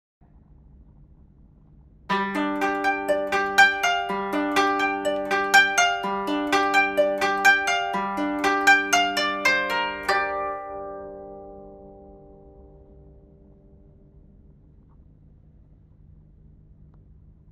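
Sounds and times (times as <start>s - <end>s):
koto: 2.1s - 13.7s.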